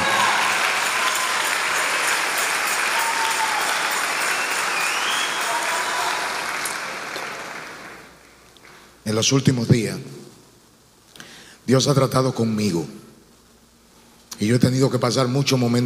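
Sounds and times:
audience applause: 0.0s - 8.2s
speech: 9.1s - 10.2s, 11.7s - 13.0s, 14.4s - 15.8s.

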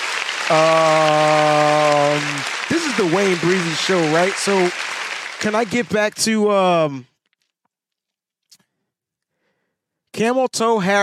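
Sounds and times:
applause sound effect: 0.0s - 7.0s
speech: 0.5s - 1.6s, 3.0s - 7.1s, 10.2s - 11.0s.

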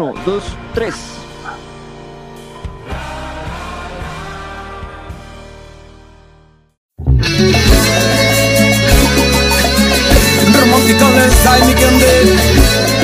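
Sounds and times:
speech: 0.0s - 1.7s
ringtone playing a romantic song: 7.3s - 13.0s.

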